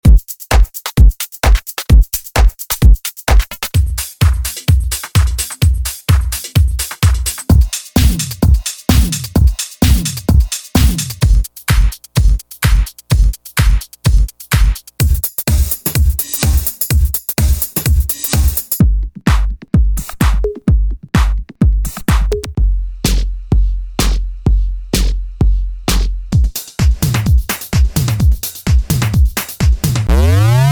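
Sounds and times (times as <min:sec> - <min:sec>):
electro house music: 0:00.0 - 0:30.6.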